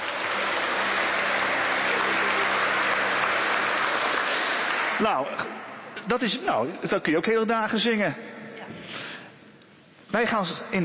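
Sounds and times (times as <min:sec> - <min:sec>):
audience applause: 0:00.0 - 0:05.9
speech: 0:05.0 - 0:09.0, 0:10.1 - 0:10.8.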